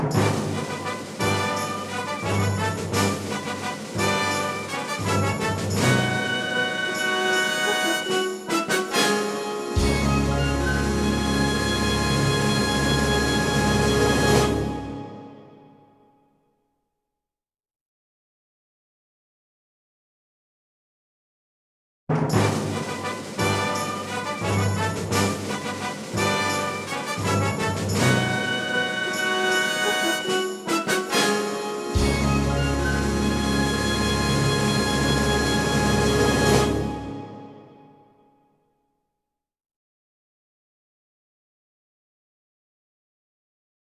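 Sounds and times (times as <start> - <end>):
instrumental fanfare: 0.1 - 15.9, 22.3 - 38.0.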